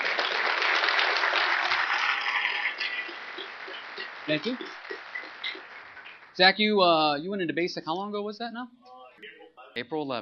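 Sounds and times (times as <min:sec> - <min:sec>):
audience round of applause: 0:00.0 - 0:06.8
speech: 0:04.3 - 0:04.8, 0:06.4 - 0:08.8, 0:09.8 - 0:10.2.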